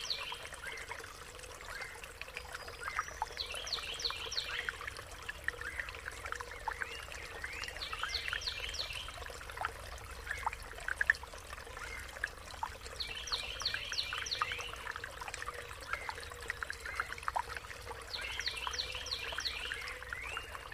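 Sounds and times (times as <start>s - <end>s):
birds singing in nature: 0.0s - 1.0s, 1.7s - 4.8s, 5.5s - 9.3s, 13.0s - 15.0s, 18.1s - 20.7s
stream flowing in nature: 0.0s - 20.7s.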